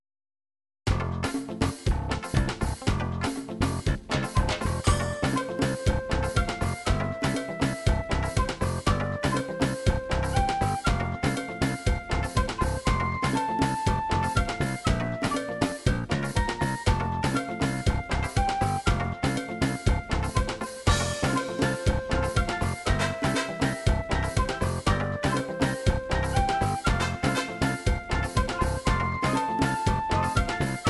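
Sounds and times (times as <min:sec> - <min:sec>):
samba rhythm: 0:00.9 - 0:30.8.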